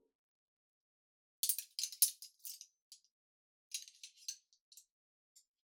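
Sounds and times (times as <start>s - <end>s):
dishes being served: 1.5s - 2.7s, 3.7s - 4.4s.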